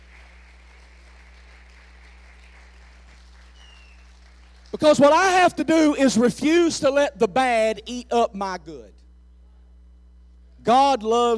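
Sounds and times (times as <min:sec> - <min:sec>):
audience hand clapping: 0:00.0 - 0:05.4
speech: 0:04.7 - 0:09.0, 0:10.6 - 0:11.3.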